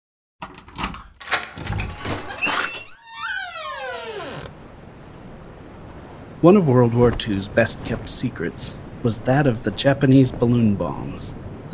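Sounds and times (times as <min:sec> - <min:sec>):
cabinet door opening or closing: 0:00.4 - 0:04.5
speech: 0:06.4 - 0:11.7.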